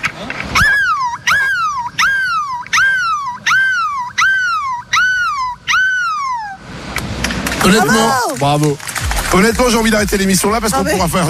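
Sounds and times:
person imitating a seagull's cry: 0.6 - 6.6, 7.7 - 8.4
speech: 7.7 - 11.2.

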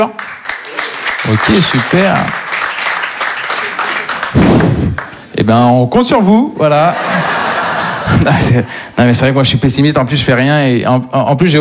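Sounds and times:
speech: 0.0 - 0.2, 1.2 - 2.4, 4.9 - 7.3, 8.1 - 11.5
audience applause at an evening talk: 0.0 - 5.2
laughter: 0.7 - 4.4, 6.8 - 8.7.

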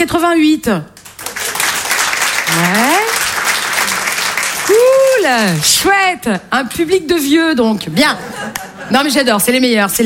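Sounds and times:
speech: 0.0 - 0.9, 2.5 - 3.1, 4.7 - 10.0
comedy show audience applauding at the Open du Rire: 1.1 - 5.7
laughter: 7.9 - 9.2.

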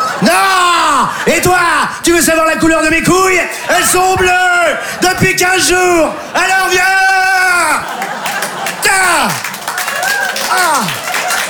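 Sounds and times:
laughter: 0.0 - 2.0, 3.2 - 11.4
speech: 0.2 - 0.4, 1.3 - 8.1, 8.8 - 9.5, 10.5 - 11.0
audience applause: 6.5 - 11.4.

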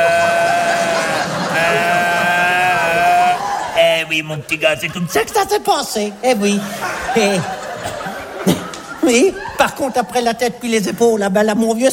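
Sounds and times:
human voice imitating a bellowing deer: 0.0 - 3.4
laughter: 0.0 - 5.7, 6.4 - 10.4
speech: 4.2 - 11.9.

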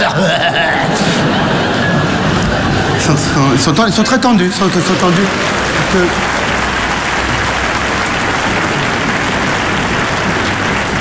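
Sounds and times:
laughter: 0.0 - 10.7
audience applause: 2.2 - 11.0
speech: 3.1 - 6.5.

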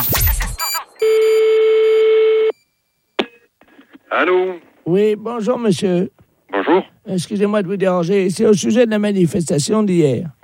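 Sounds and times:
telephone tone: 0.5 - 3.5
speech: 4.2 - 10.4.

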